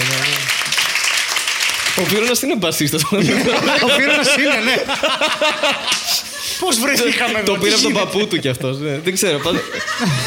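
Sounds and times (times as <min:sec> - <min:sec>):
audience applause: 0:00.0 - 0:02.5
speech: 0:02.0 - 0:10.2
laughter: 0:03.0 - 0:08.0, 0:09.1 - 0:10.2.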